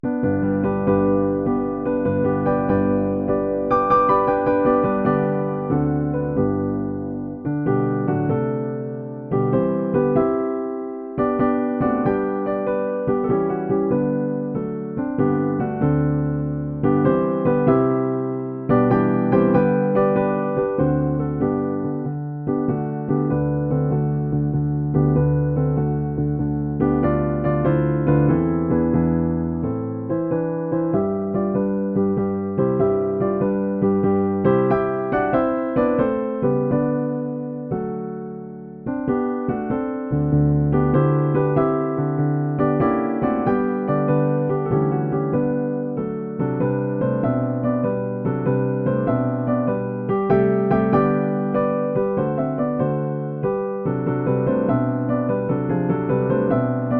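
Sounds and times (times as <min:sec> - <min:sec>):
classical piece: 0:00.0 - 0:56.9.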